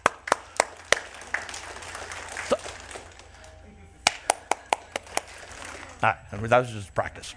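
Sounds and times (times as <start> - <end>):
audience clapping hands: 0.0 - 5.9
speech: 6.0 - 7.3.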